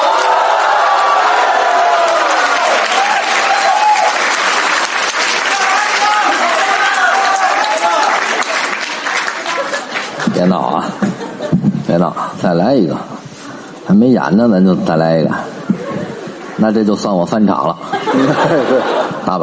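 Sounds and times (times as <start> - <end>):
cheering and whoops: 0.0 - 8.6
large audience applauding: 0.0 - 10.8
laughter: 9.2 - 11.9, 17.6 - 19.4
speech: 12.7 - 13.2, 13.9 - 15.5, 16.6 - 19.4.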